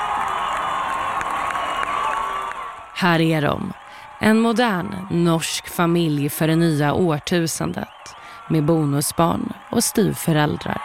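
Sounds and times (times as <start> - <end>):
crowd cheering at royal wedding: 0.0 - 10.8
speech: 3.0 - 10.8.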